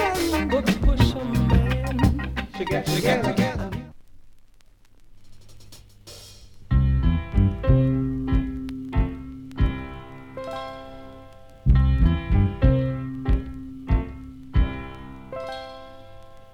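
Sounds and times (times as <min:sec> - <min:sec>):
Jamaica funk soul breakbeat: 0:00.0 - 0:03.9, 0:05.2 - 0:10.0, 0:11.7 - 0:15.2.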